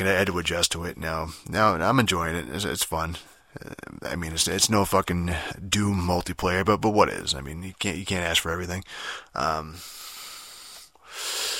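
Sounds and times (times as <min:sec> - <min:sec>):
speech: 0:00.0 - 0:10.1
tired gamer breathing heavily: 0:08.8 - 0:11.5.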